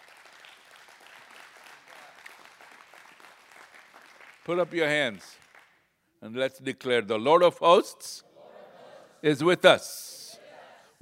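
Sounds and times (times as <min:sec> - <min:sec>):
audience clapping: 0:00.0 - 0:05.9
speech: 0:04.5 - 0:05.4, 0:06.2 - 0:08.3, 0:09.2 - 0:10.1.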